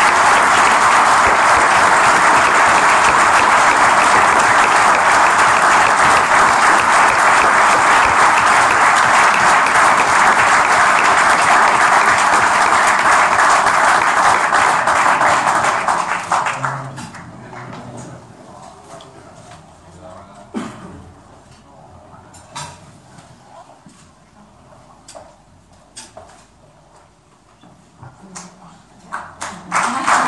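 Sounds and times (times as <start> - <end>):
audience applauding: 0.0 - 17.8, 29.4 - 30.2.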